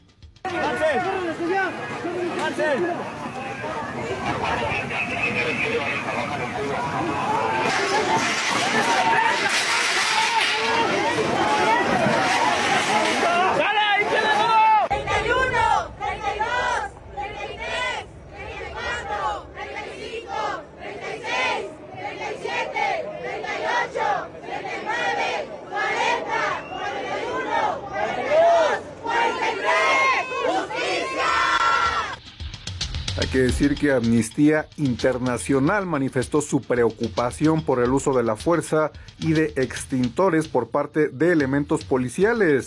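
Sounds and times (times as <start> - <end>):
crowd roar at a demonstration: 0.4 - 32.2
protesters chanting slogans at a demonstration against violence and disappearances: 0.4 - 32.2
speech: 2.5 - 9.6, 33.3 - 42.6.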